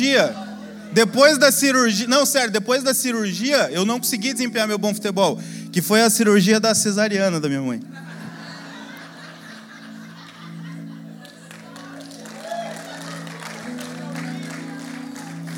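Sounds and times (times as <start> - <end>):
laughter: 0.0 - 1.0, 7.9 - 15.5
speech: 0.0 - 8.1
audience applause after a joke: 11.2 - 15.5.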